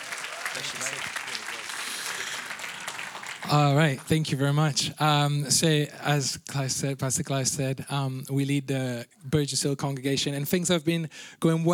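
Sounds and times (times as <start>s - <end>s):
audience applause: 0.0s - 4.3s
speech: 0.5s - 2.6s, 3.4s - 11.7s.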